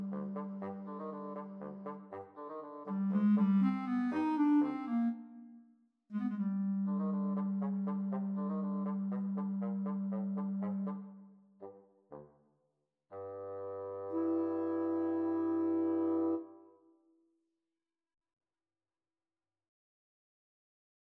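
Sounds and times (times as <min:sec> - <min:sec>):
clarinet and bassoon duet: 0:00.0 - 0:12.4, 0:13.1 - 0:16.8.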